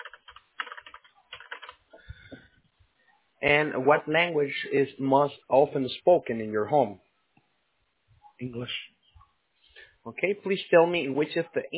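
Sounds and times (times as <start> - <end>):
typing on a computer keyboard: 0.0 - 1.8
speech: 3.4 - 7.0, 8.4 - 8.9, 10.1 - 11.7.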